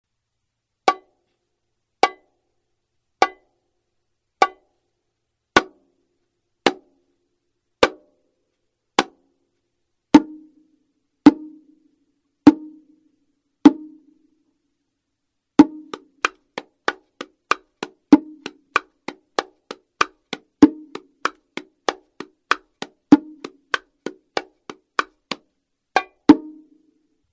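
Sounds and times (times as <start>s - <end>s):
bongo drums: 2.0s - 2.2s, 3.2s - 3.5s, 4.4s - 4.6s, 5.6s - 5.8s, 10.1s - 10.5s, 11.2s - 11.7s, 12.4s - 12.9s, 13.6s - 14.0s, 15.6s - 26.8s.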